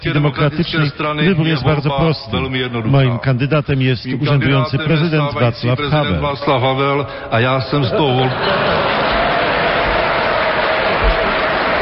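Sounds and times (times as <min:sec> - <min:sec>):
speech: 0:00.0 - 0:09.1
laughter: 0:07.8 - 0:10.4
applause: 0:08.8 - 0:11.7.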